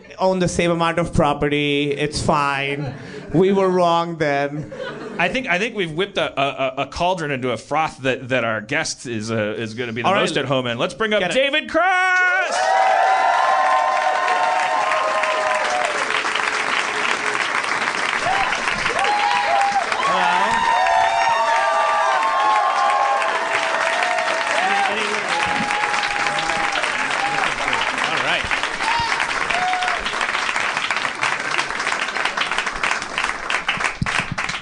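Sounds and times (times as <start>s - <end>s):
speech: 0.2s - 13.0s
extended audience applause: 12.2s - 34.6s.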